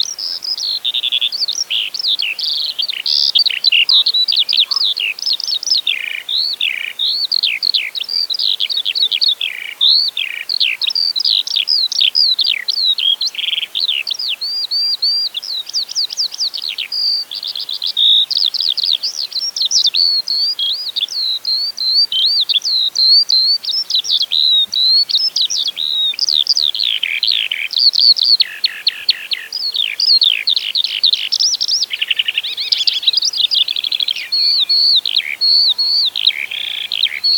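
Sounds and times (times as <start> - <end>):
Eurasian skylark song: 0.0 - 37.3
speech: 35.6 - 36.0.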